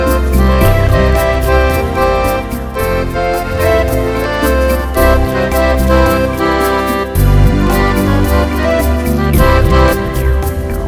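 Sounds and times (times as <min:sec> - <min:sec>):
sweet ballad: 0:00.0 - 0:10.8.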